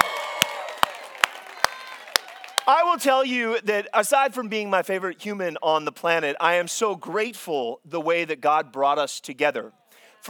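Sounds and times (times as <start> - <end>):
audience applause and cheering: 0.0 - 3.0
speech: 2.7 - 10.2.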